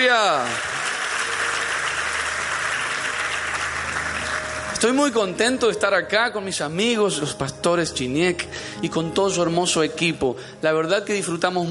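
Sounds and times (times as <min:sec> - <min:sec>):
audience applause: 0:00.0 - 0:05.2
speech: 0:04.8 - 0:11.6.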